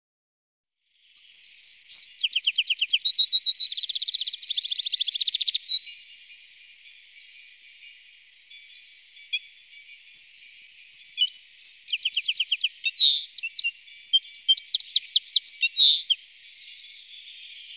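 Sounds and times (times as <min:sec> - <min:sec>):
citril finch chirping and buzzing: 0:01.0 - 0:05.9, 0:09.3 - 0:16.4.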